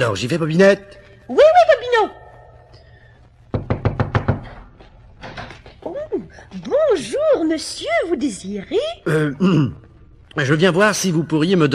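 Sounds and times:
speech: 0.0 - 2.2, 7.0 - 11.7
knocking on a door: 3.5 - 4.8.

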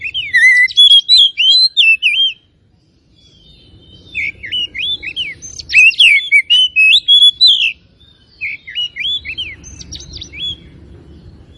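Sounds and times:
Oriental magpie-robin song: 0.0 - 11.5.

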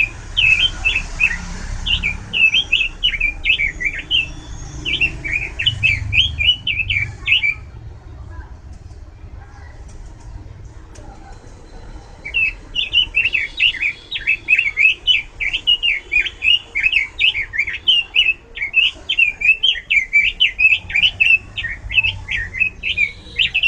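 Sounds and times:
bird singing bright warbling chirps and thin whistled notes: 0.0 - 7.8, 12.0 - 23.6.

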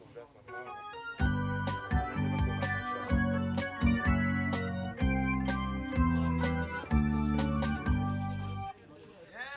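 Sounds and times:
jingle: 1.2 - 8.7.

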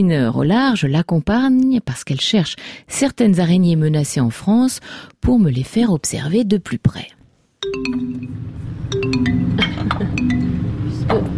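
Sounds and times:
speech: 0.0 - 10.0
glass jars of spider specimens clinking in a museum collection: 8.9 - 10.6.

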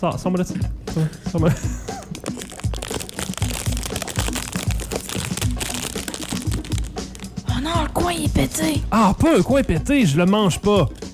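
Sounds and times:
speech: 0.0 - 2.0, 7.6 - 11.0
snack package plastic wrapper being torn open and crinkling: 2.0 - 7.4.

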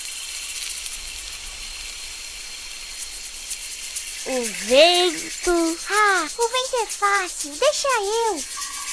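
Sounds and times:
voice imitating rain: 4.2 - 8.5
speech: 4.2 - 8.6.

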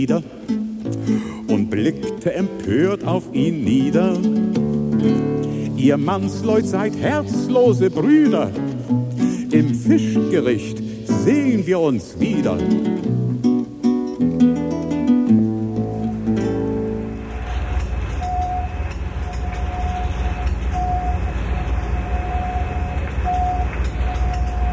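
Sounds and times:
speech: 0.0 - 13.2
music: 0.0 - 18.6
constant low engine drone: 15.5 - 24.7
sonar device of a large fishing cutter pinging: 18.2 - 24.7.

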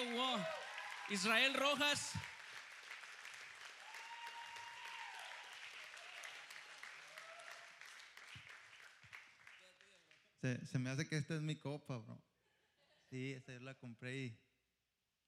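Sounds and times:
audience applause: 0.0 - 10.2
speech: 0.4 - 2.3, 10.4 - 12.3, 13.1 - 14.4.

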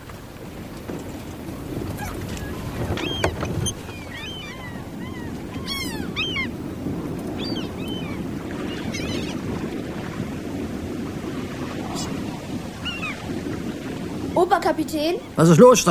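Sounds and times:
wind and sea waves while a ship sails: 0.0 - 15.8
high squeaking calls: 2.0 - 6.6, 7.4 - 9.4, 12.8 - 13.2
speech: 14.5 - 15.8.

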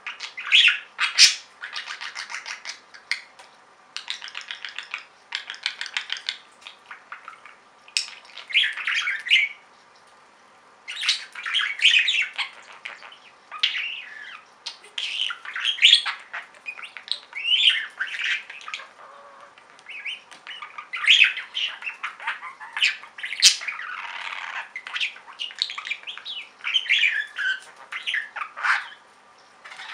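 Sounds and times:
budgerigar calls: 0.1 - 3.3, 4.0 - 9.6, 10.9 - 29.9.

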